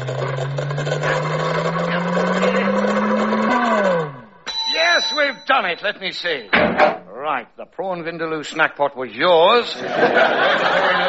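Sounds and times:
fusion machine sound effect powering up: 0.0s - 4.4s
speech: 5.4s - 11.0s
laughter: 9.7s - 11.0s.

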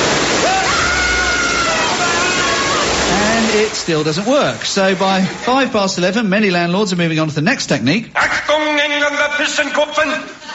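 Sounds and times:
sprinklers spraying water: 0.0s - 6.2s
speech: 3.9s - 10.5s.

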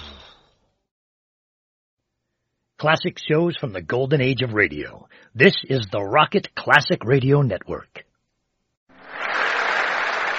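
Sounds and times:
speech: 2.8s - 8.1s
crowd clapping and cheering for Margaret Thatcher: 9.0s - 10.3s.

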